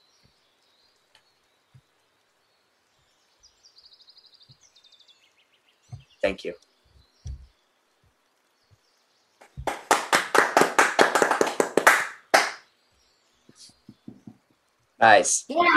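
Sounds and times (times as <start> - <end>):
speech: 6.2 - 6.7, 15.0 - 15.7
weak cheering and clapping: 9.4 - 12.6.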